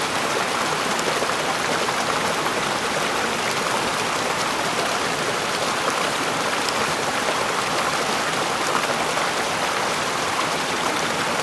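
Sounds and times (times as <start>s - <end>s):
waterfall falling from above: 0.0s - 11.4s.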